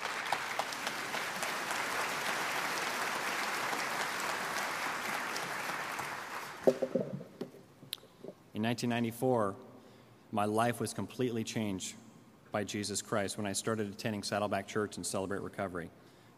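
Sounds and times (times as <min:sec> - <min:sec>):
church congregation applauding to welcome guests: 0:00.0 - 0:07.4
speech: 0:08.6 - 0:09.7, 0:10.3 - 0:16.1.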